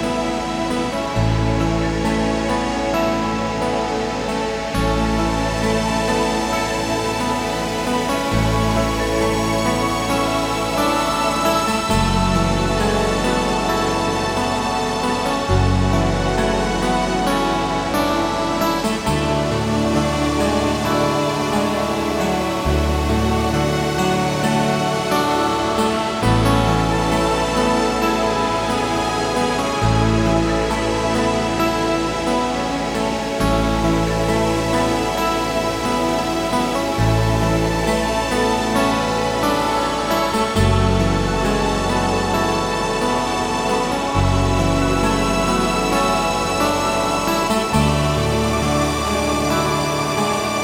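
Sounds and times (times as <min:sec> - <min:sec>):
meditative flowing music: 0:00.0 - 0:50.6.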